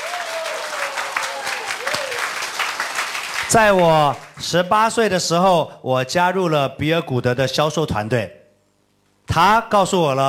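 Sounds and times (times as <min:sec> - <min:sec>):
audience applause: 0:00.0 - 0:04.4
speech: 0:03.5 - 0:08.4, 0:09.3 - 0:10.2.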